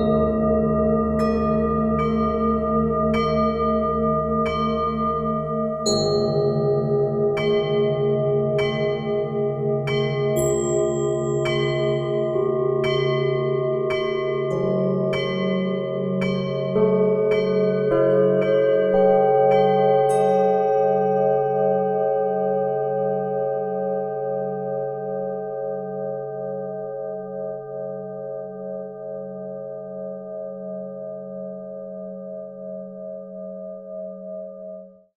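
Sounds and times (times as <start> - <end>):
Tibetan bowls ringing: 0.0 - 21.7
bells: 0.0 - 23.7
piano: 0.0 - 28.2.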